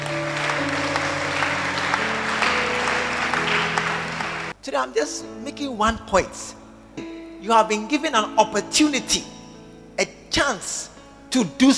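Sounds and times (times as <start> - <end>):
clapping: 0.0 - 4.5
speech: 4.7 - 9.4, 10.0 - 11.7.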